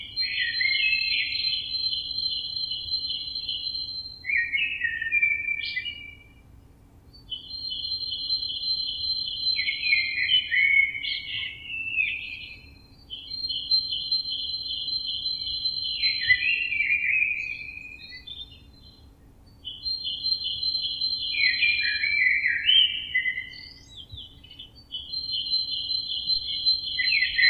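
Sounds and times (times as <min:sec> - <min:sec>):
blackbird singing: 0:00.0 - 0:06.4, 0:07.1 - 0:27.4.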